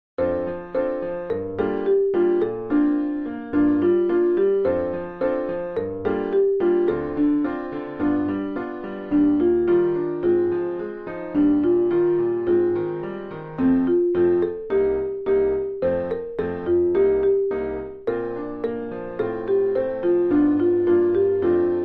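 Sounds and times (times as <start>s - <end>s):
marimba: 0.2s - 21.8s.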